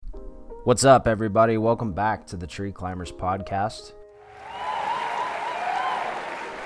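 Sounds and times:
speech: 0.6s - 4.5s
applause: 4.2s - 6.6s.

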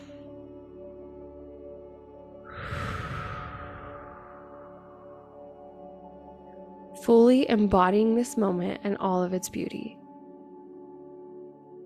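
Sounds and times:
quiet sustained musical drone: 0.0s - 7.0s
deep cleansing breath in a guided meditation: 2.4s - 5.4s
speech: 7.1s - 10.0s.

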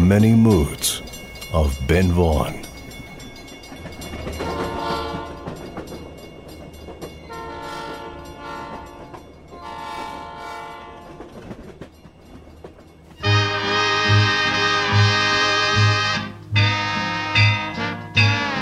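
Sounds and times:
steam train engine rumbling: 0.0s - 18.6s
speech: 0.1s - 2.7s
steam train horn blasts: 4.4s - 5.6s, 7.3s - 11.3s, 13.2s - 18.6s.

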